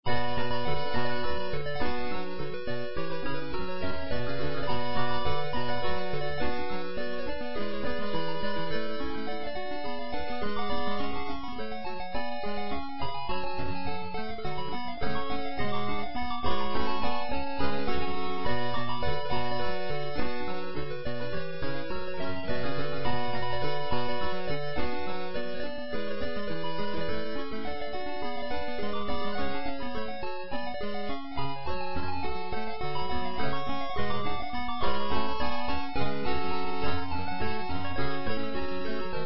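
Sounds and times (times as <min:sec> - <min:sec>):
8-bit chiptune melody: 0:00.1 - 0:39.2.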